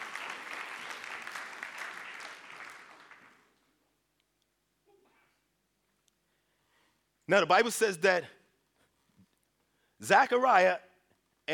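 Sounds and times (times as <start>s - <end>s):
audience hand clapping: 0.0s - 3.7s
speech: 7.3s - 8.4s, 10.0s - 10.9s.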